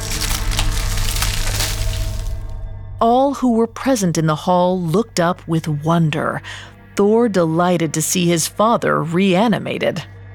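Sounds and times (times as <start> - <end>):
creaking and splintering: 0.0 - 2.6
speech: 3.0 - 10.2.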